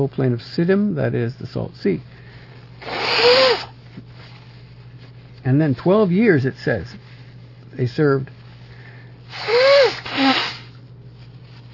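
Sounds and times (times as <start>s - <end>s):
speech: 0.0s - 2.2s, 5.4s - 7.0s, 7.8s - 8.4s
faint steady hum: 0.0s - 11.7s
person sneezing from allergies: 2.8s - 3.7s, 9.3s - 10.7s.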